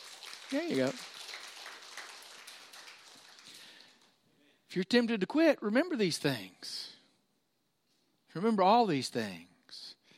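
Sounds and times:
audience clapping: 0:00.0 - 0:04.2
speech: 0:00.5 - 0:01.1, 0:04.7 - 0:07.0, 0:08.4 - 0:09.9.

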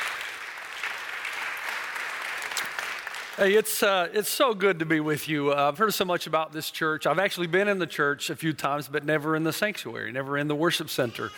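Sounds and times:
church applause welcoming a visiting preacher to Mount Pleasant: 0:00.0 - 0:03.7
speech: 0:03.4 - 0:11.3.

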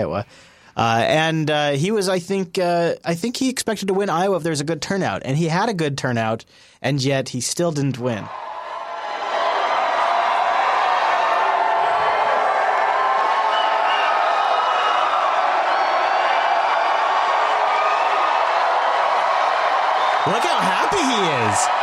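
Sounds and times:
speech: 0:00.0 - 0:08.5
large crowd cheering: 0:08.3 - 0:21.8
whoops and shouts from a crowd: 0:08.3 - 0:21.8.

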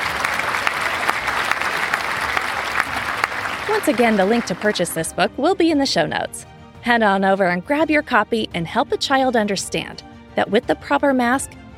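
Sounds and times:
crowd applauding: 0:00.0 - 0:05.1
speech: 0:03.7 - 0:11.7.

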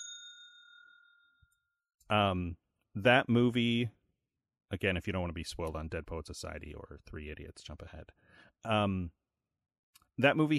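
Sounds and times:
small bell rung by a podcast host: 0:00.0 - 0:01.8
speech: 0:02.1 - 0:04.0, 0:04.7 - 0:09.2, 0:10.2 - 0:10.5.

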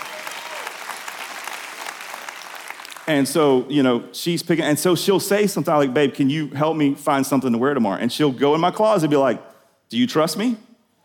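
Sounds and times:
audience applause: 0:00.0 - 0:03.1
speech: 0:03.1 - 0:10.6.

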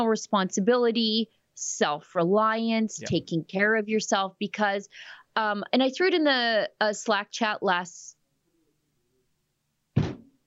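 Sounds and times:
speech: 0:00.0 - 0:08.2
hand banging on a desk: 0:10.0 - 0:10.3.

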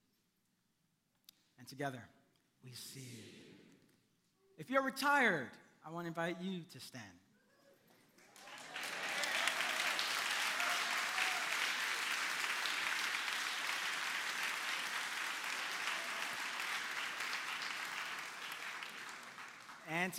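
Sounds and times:
speech: 0:01.6 - 0:03.5, 0:04.6 - 0:07.2, 0:19.9 - 0:20.1
applause: 0:08.0 - 0:20.1.

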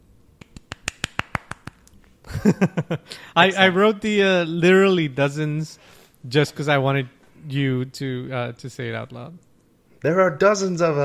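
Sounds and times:
hand claps: 0:00.4 - 0:01.9
speech: 0:02.4 - 0:11.0.

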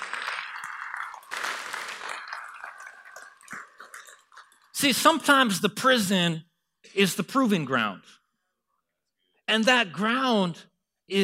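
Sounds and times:
audience round of applause: 0:00.0 - 0:04.7
speech: 0:04.8 - 0:08.2, 0:09.5 - 0:11.2.

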